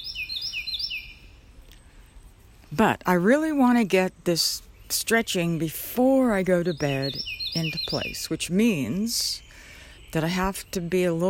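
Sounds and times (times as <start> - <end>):
bird calling insistently: 0.0 - 2.1, 4.4 - 11.2
speech: 2.7 - 9.5, 10.1 - 11.2.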